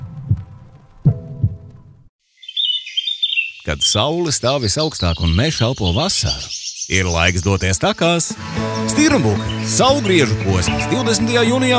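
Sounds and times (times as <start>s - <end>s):
deep thudding heartbeat: 0.0s - 1.8s
high-pitched bird chirping: 2.3s - 11.7s
speech: 3.6s - 11.7s.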